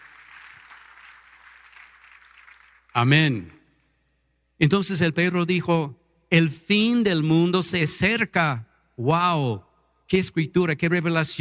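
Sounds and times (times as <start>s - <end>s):
congregation applauding for the Lord in a church service: 0.0s - 3.6s
speech: 3.0s - 3.6s, 4.6s - 11.3s.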